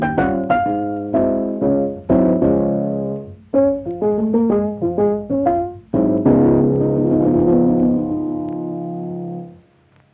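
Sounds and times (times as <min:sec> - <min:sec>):
ragtime on a vintage piano: 0:00.0 - 0:09.6.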